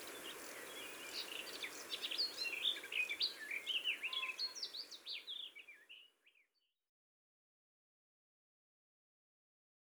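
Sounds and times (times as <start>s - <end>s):
garden warbler singing: 0.0s - 6.5s.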